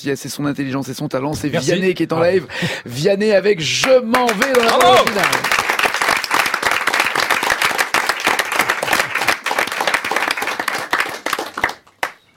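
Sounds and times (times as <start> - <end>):
speech: 0.0 - 5.6
audience applause: 3.8 - 12.2.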